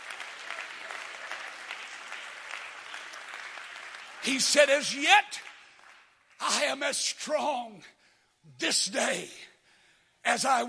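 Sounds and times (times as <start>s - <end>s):
audience clapping: 0.0s - 6.9s
speech: 4.2s - 5.5s, 6.6s - 9.5s, 10.2s - 10.6s.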